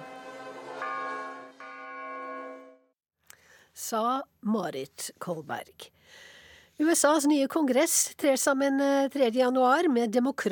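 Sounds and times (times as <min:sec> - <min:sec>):
church bells ringing: 0:00.7 - 0:02.9
speech: 0:03.8 - 0:10.4.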